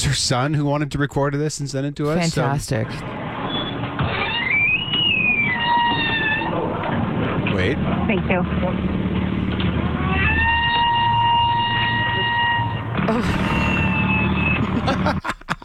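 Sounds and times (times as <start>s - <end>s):
speech: 0.0s - 3.2s, 7.6s - 9.1s, 13.1s - 13.4s
squeaky door opening and closing: 3.1s - 7.0s, 9.6s - 14.8s
laughter: 13.1s - 15.6s.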